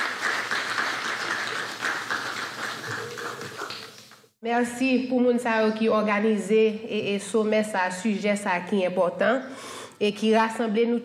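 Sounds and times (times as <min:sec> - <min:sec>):
audience applause: 0:00.0 - 0:04.2
speech: 0:04.4 - 0:11.0.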